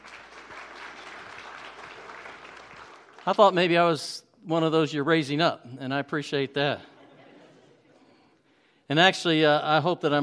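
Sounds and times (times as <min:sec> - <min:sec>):
round of applause: 0:00.0 - 0:03.7
speech: 0:03.2 - 0:06.9, 0:08.9 - 0:10.2
laughter: 0:06.8 - 0:08.2.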